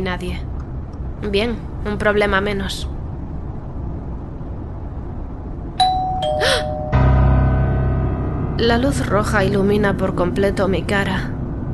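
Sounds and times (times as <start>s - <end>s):
speech: 0.0s - 0.5s, 1.2s - 2.9s, 8.6s - 11.3s
steady low hum: 0.0s - 11.7s
doorbell ringing with two chime notes: 5.8s - 7.6s.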